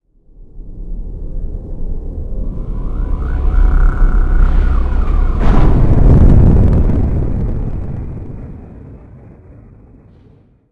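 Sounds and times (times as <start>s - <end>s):
engine launching: 2.6s - 9.0s.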